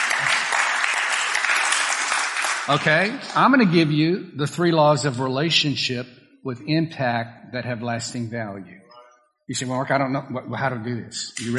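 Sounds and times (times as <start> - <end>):
audience applause: 0.0 - 3.6
speech: 2.7 - 8.8, 9.5 - 11.5.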